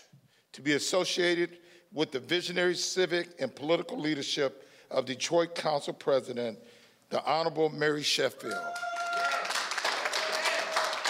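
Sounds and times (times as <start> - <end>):
speech: 0.6 - 8.9
faint voices or cheers: 8.5 - 9.5
crowd applauding: 8.6 - 11.0.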